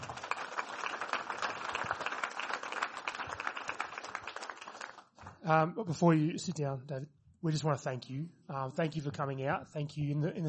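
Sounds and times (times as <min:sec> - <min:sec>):
audience applause: 0:00.0 - 0:05.1
speech: 0:05.5 - 0:10.4.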